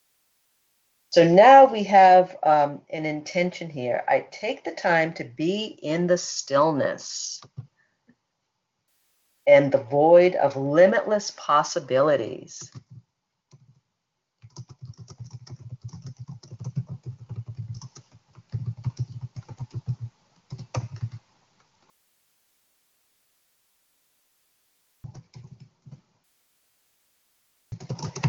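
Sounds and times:
faint hiss: 0:00.0 - 0:01.2, 0:08.9 - 0:09.7, 0:20.2 - 0:25.1, 0:26.1 - 0:27.8
speech: 0:01.1 - 0:07.5, 0:09.5 - 0:12.9
typing on a computer keyboard to write notes: 0:12.6 - 0:13.8, 0:14.4 - 0:21.2, 0:25.0 - 0:26.0, 0:27.7 - 0:28.2.

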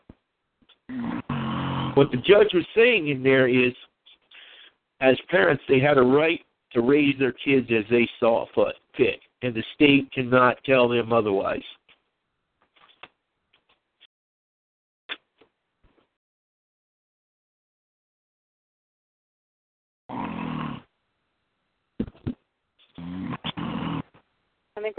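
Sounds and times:
person snoring: 0:00.9 - 0:02.2, 0:20.1 - 0:20.9, 0:23.0 - 0:24.1
speech: 0:02.0 - 0:03.9, 0:05.0 - 0:11.8, 0:24.8 - 0:24.9.

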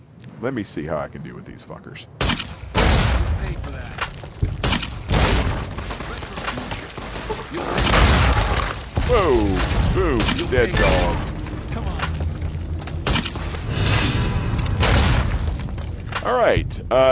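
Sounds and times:
speech: 0:00.4 - 0:02.6, 0:03.4 - 0:04.0, 0:07.5 - 0:07.9, 0:09.1 - 0:11.3, 0:16.2 - 0:17.1
mercenary grenade rifle firing in game: 0:02.2 - 0:11.3, 0:14.7 - 0:15.6
40 millimeter grenades exploding in game: 0:02.2 - 0:16.4.

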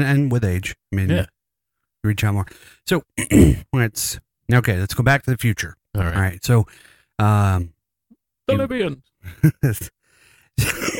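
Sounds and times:
speech: 0:00.0 - 0:01.4, 0:02.0 - 0:07.8, 0:08.5 - 0:10.0, 0:10.6 - 0:10.9
person coughing: 0:03.2 - 0:03.6, 0:10.6 - 0:10.9.

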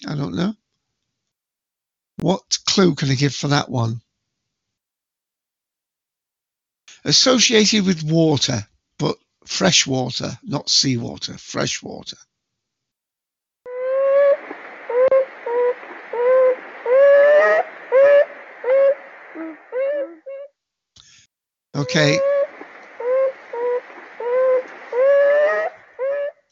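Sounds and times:
speech: 0:00.0 - 0:00.6, 0:02.2 - 0:04.0, 0:07.0 - 0:12.3, 0:21.8 - 0:22.3
beaver vocalizing: 0:13.7 - 0:20.5, 0:21.8 - 0:26.4.

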